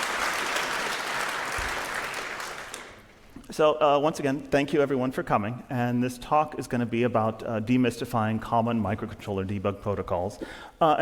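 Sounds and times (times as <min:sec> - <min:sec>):
round of applause: 0:00.0 - 0:03.1
speech: 0:03.5 - 0:11.0.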